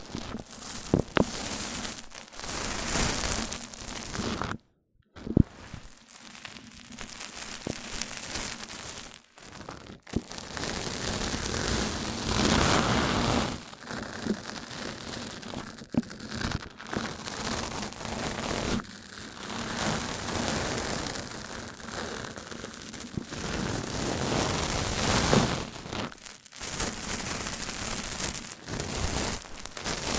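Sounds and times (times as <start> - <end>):
mic-on-mic rubbing and scratching: 0.0 - 18.9, 19.5 - 30.1.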